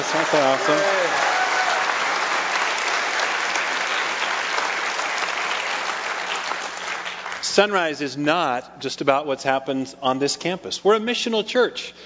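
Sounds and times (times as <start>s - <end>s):
church audience clapping for the pastoral staff: 0.0s - 7.8s
speech: 0.1s - 1.4s, 7.6s - 12.0s.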